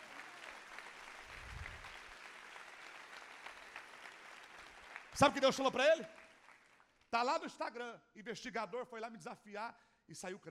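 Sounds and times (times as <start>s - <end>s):
audience applauding: 0.0s - 7.0s
speech: 5.2s - 6.2s, 7.1s - 10.4s.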